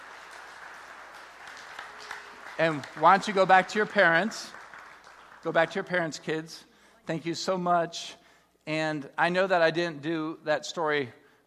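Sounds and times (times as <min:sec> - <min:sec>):
audience applauding children after a storytelling session: 0:00.0 - 0:06.5
speech: 0:02.6 - 0:04.6, 0:05.4 - 0:11.2.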